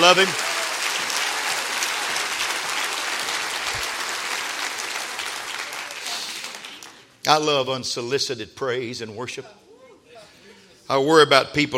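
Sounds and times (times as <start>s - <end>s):
speech: 0.0s - 0.5s, 7.3s - 9.6s, 10.9s - 11.7s
audience clapping hands: 0.0s - 7.2s.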